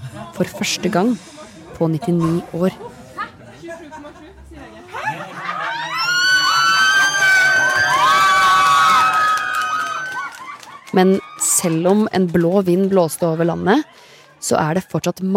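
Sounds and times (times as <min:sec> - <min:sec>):
murmuring chatter: 0:00.0 - 0:08.0, 0:09.5 - 0:15.3
speech: 0:00.2 - 0:02.9, 0:11.0 - 0:15.3
laughter: 0:02.8 - 0:08.4, 0:12.4 - 0:14.4
crowd of party supporters cheering election result: 0:04.9 - 0:15.3.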